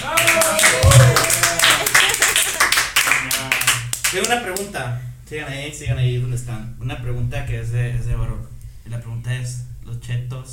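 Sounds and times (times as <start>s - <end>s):
audience applause: 0.0s - 4.3s
speech: 4.1s - 10.5s.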